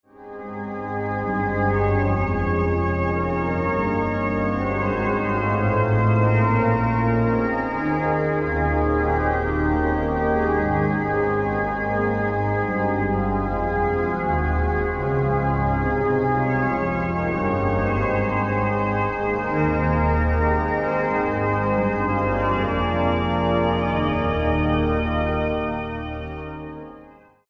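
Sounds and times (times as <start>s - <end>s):
organ playing a psalm: 0.1s - 27.4s.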